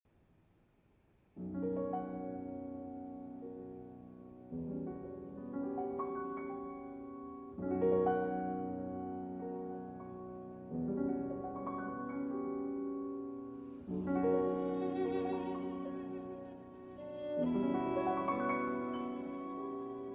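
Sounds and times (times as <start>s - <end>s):
piano: 1.2s - 20.1s
violin: 13.8s - 20.1s.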